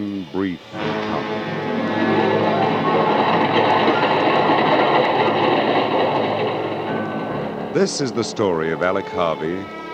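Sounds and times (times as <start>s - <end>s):
speech: 0.2s - 1.4s, 7.8s - 9.8s
train rumbling past at a railway station: 0.7s - 9.9s.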